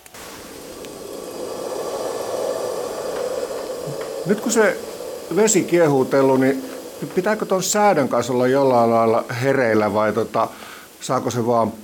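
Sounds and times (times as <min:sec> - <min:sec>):
gas camping stove flame hissing: 0:00.0 - 0:11.8
speech: 0:04.2 - 0:11.8.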